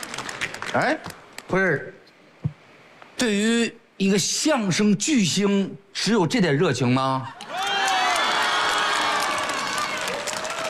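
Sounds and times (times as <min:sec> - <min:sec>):
speech: 0:00.7 - 0:02.0, 0:03.2 - 0:07.4
audience cheering and applauding: 0:07.4 - 0:10.6.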